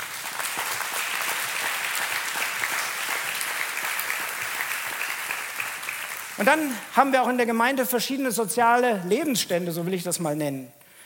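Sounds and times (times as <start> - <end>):
audience applause: 0.0 - 6.9
speech: 6.4 - 10.8.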